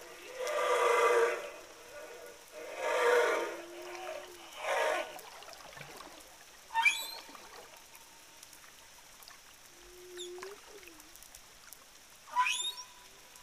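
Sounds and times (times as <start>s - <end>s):
Southern Indian Ocean humpback whale song with rumbling moans and wavering cries: 0.0s - 6.1s, 6.7s - 7.9s, 9.6s - 11.3s, 12.3s - 13.3s.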